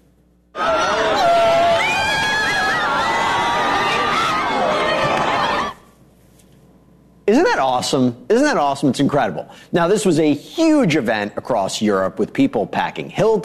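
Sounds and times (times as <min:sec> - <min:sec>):
crowd cheering at solar eclipse totality: 0:00.6 - 0:05.9
speech: 0:07.3 - 0:13.4.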